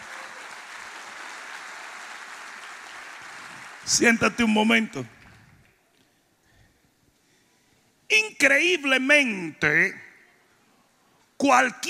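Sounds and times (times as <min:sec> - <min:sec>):
audience applause: 0:00.0 - 0:04.1
speech: 0:03.9 - 0:05.2, 0:08.4 - 0:10.1, 0:11.4 - 0:11.8.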